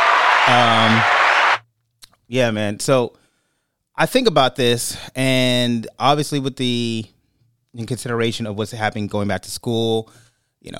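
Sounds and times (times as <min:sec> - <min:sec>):
applause: 0:00.0 - 0:01.6
low voiced cheer: 0:00.0 - 0:01.6
speech: 0:00.5 - 0:01.2, 0:02.3 - 0:03.2, 0:04.0 - 0:10.7.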